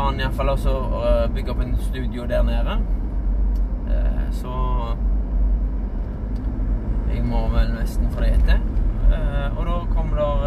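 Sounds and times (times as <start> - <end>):
bus engine rumbling through a roundabout: 0.0 - 10.4
speech: 0.1 - 3.0, 3.9 - 5.1, 7.1 - 10.4.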